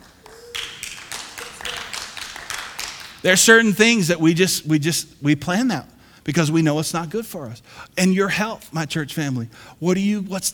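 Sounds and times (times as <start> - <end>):
audience applause: 0.0 - 3.5
speech: 3.2 - 10.5.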